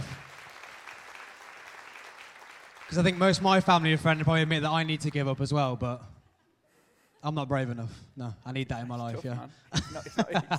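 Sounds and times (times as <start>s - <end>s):
group of people clapping: 0.0s - 5.2s
speech: 2.9s - 6.1s, 7.2s - 10.5s
laughter: 8.8s - 10.5s.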